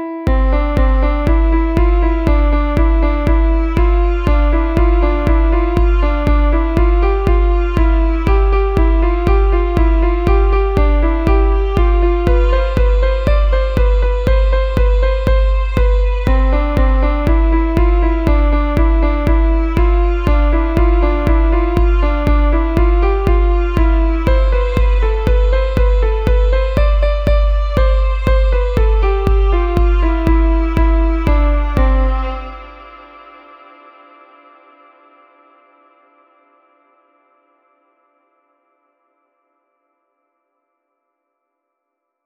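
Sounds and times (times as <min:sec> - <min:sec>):
calm beats: 0:00.3 - 0:33.1.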